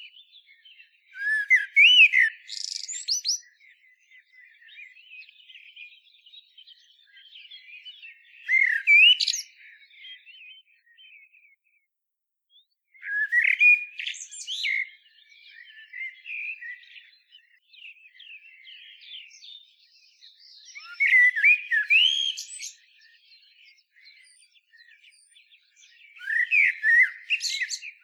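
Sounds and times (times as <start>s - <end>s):
common blackbird singing: 0.0s - 11.8s, 12.5s - 28.0s.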